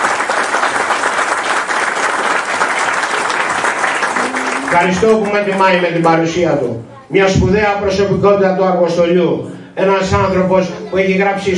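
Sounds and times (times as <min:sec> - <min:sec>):
audience applause: 0:00.0 - 0:06.3
speech: 0:04.7 - 0:11.5.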